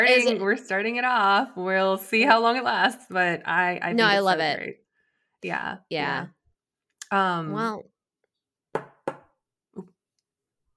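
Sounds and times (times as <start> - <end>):
speech: 0.0 - 4.8, 5.4 - 6.4, 7.1 - 7.9
pen knocking on a table: 8.7 - 9.4.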